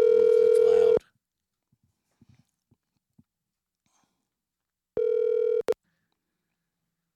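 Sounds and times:
telephone ringing on the line during an outgoing call: 0:00.0 - 0:01.0, 0:05.0 - 0:05.8.

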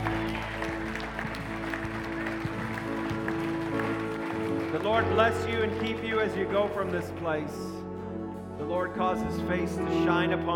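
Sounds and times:
audience clapping hands: 0:00.0 - 0:07.4
speech: 0:04.8 - 0:07.8, 0:08.6 - 0:10.5.

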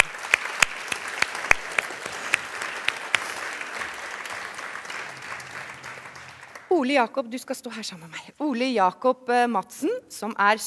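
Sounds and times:
theatre audience applauding: 0:00.0 - 0:06.8
speech: 0:06.8 - 0:10.6.

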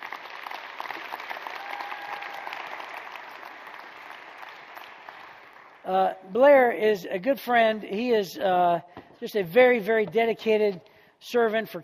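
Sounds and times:
audience applause: 0:00.0 - 0:05.9
speech: 0:05.8 - 0:11.8.

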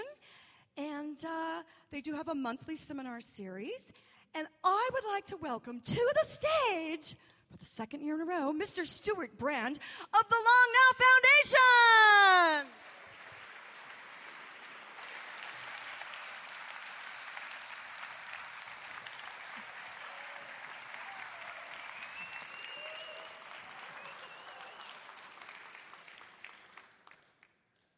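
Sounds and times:
speech: 0:01.2 - 0:12.8
seminar audience applause at a Long Now Foundation event in San Francisco: 0:12.2 - 0:27.6.

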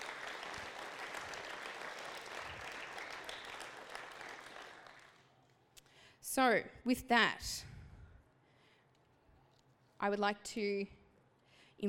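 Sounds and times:
audience applause: 0:00.0 - 0:05.2
speech: 0:06.4 - 0:07.7, 0:10.0 - 0:11.0.

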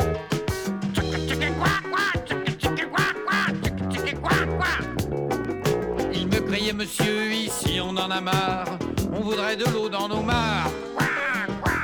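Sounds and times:
upbeat backing of drums and sustained bass notes: 0:00.0 - 0:11.8
ducks quacking: 0:00.9 - 0:05.0, 0:10.9 - 0:11.8
speech: 0:08.0 - 0:10.8.

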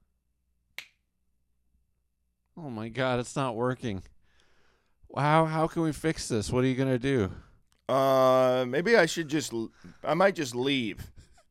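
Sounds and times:
finger snapping: 0:00.8 - 0:01.0
speech: 0:02.6 - 0:04.1, 0:05.1 - 0:11.2.

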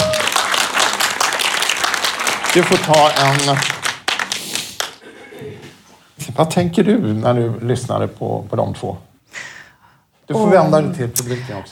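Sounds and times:
audience applause: 0:00.0 - 0:05.0
speech: 0:02.6 - 0:03.8, 0:06.2 - 0:09.1, 0:10.3 - 0:11.7.

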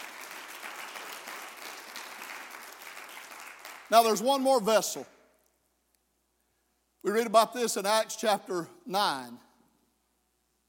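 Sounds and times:
audience clapping hands in praise: 0:00.0 - 0:04.5
speech: 0:03.9 - 0:05.2, 0:07.0 - 0:09.5.

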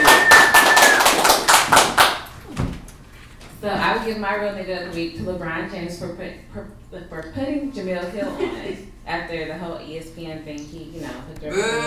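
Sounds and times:
audience clapping at a live show in Miami: 0:00.0 - 0:02.4
speech: 0:03.9 - 0:11.8.

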